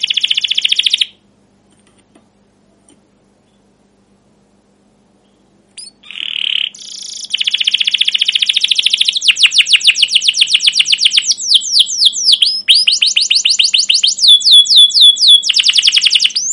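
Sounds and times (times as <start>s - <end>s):
caged domestic canary singing rolling trills: 0.0s - 1.2s, 5.7s - 16.5s.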